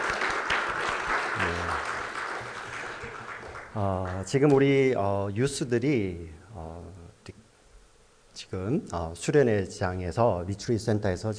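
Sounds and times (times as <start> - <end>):
audience applause: 0.0 - 4.3
speech: 3.8 - 7.4, 8.4 - 11.3.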